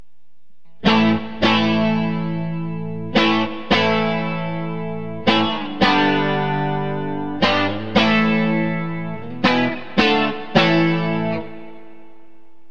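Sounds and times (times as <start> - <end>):
clean guitar bridge: 0.6 - 12.6.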